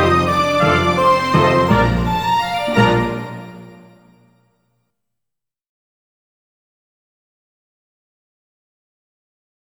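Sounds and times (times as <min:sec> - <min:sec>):
waltz music: 0:00.0 - 0:04.3.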